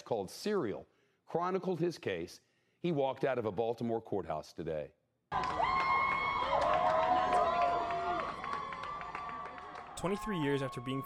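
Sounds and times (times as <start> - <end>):
speech: 0.1 - 5.8, 10.0 - 11.0
waiting crowd cheering outside courthouse: 5.3 - 11.0.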